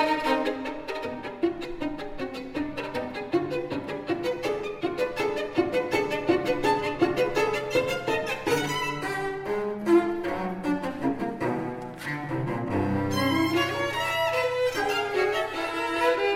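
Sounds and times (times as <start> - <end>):
cello: 0.0 - 16.3
violin: 0.0 - 16.3.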